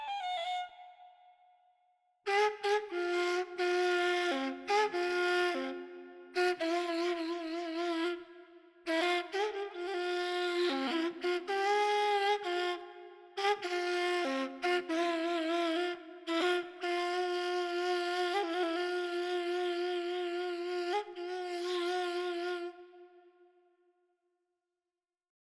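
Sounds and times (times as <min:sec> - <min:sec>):
ney flute playing in Avaz-e Isfahan mode: 0:00.0 - 0:01.3, 0:02.3 - 0:23.3.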